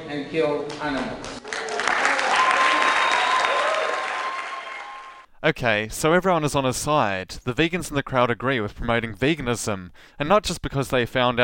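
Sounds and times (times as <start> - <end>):
speech: 0.1 - 1.4, 5.4 - 11.4
audience clapping: 0.7 - 5.3.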